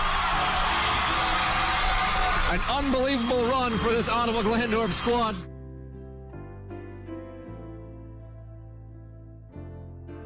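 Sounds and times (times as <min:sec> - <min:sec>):
large crowd cheering for their team: 0:00.0 - 0:05.4
speech: 0:02.5 - 0:05.5.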